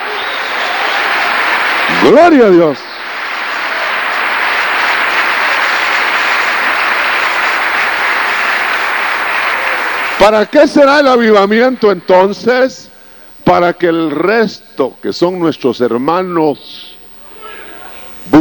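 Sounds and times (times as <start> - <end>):
audience applause: 0.0 - 11.0
speech: 2.0 - 2.9, 10.2 - 12.9, 13.5 - 16.8, 18.3 - 18.4.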